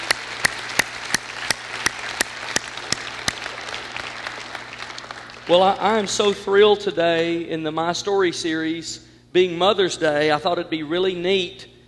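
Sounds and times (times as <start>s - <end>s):
sharp single claps: 0.0s - 5.5s
audience applause at a Mother's Day gathering: 0.0s - 6.6s
speech: 5.5s - 11.7s.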